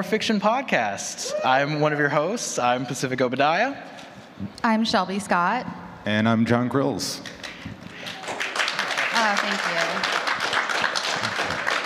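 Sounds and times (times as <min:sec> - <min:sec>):
speech: 0:00.0 - 0:07.3
audience clapping: 0:07.2 - 0:11.8.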